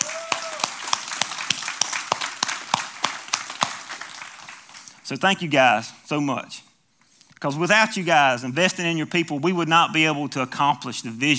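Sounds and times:
audience clapping: 0.0 - 5.0
speech: 5.1 - 6.7, 7.4 - 11.3.

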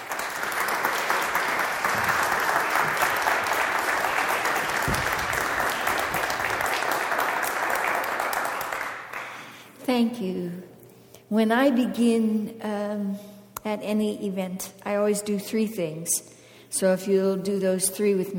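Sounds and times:
audience applause welcoming a guest speaker at a church event: 0.0 - 9.5
speech: 9.9 - 10.7, 11.3 - 18.3.

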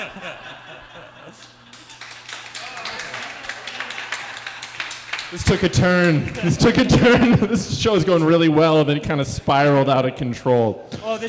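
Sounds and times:
speech: 0.0 - 1.8, 5.3 - 11.2
laughter: 0.0 - 8.2
audience applause: 1.4 - 7.5.

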